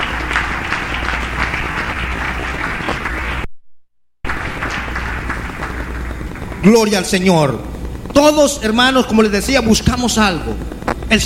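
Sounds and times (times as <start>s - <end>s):
audience applause: 0.0s - 3.5s, 4.3s - 7.5s
speech: 6.6s - 11.2s.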